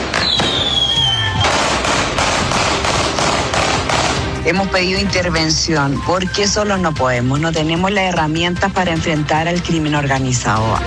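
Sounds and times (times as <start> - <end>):
fireworks at a street wake: 0.0 - 4.2
gunshots at a street wake: 0.0 - 4.6
speech: 4.5 - 10.8.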